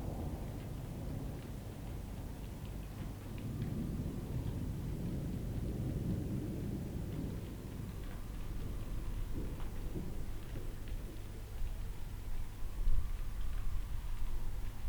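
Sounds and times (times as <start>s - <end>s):
thunder: 0.0s - 1.5s, 3.4s - 11.3s
rain: 0.0s - 14.8s.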